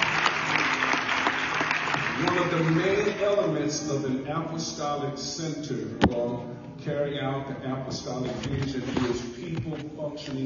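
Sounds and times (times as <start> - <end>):
audience clapping: 0.0 - 3.6
speech: 2.4 - 10.4.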